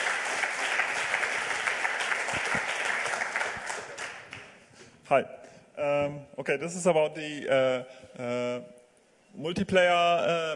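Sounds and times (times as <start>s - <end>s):
audience applause: 0.0s - 4.5s
speech: 5.1s - 10.5s.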